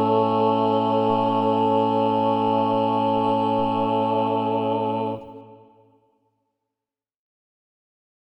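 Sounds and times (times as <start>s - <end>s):
SATB choir with balanced voices singing: 0.0s - 6.0s.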